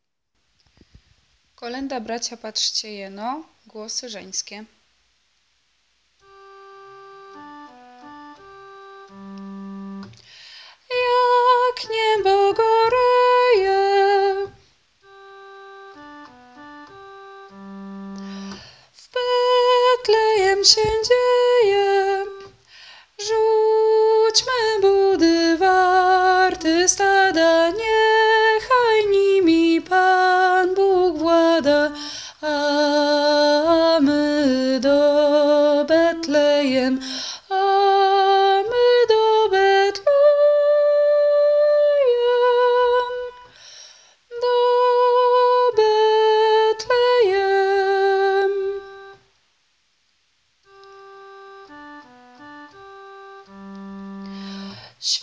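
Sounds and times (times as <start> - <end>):
female voices singing: 10.9 - 14.6, 19.1 - 22.5, 23.2 - 43.4, 44.4 - 48.9.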